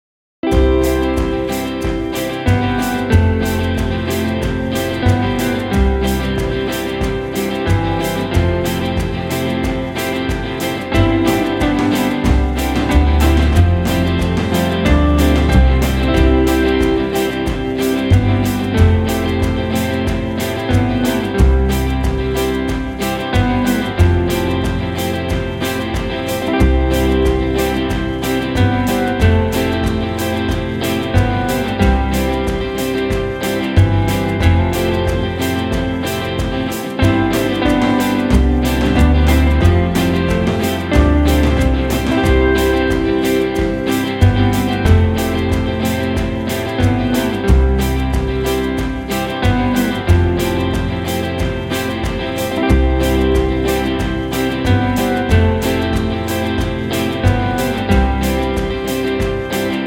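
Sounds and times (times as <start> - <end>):
instrumental music: 0.4 - 59.8.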